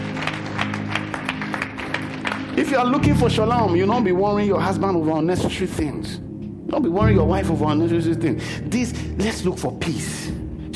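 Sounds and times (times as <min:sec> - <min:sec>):
hands clapping: 0:00.0 - 0:03.2
speech: 0:02.7 - 0:10.4.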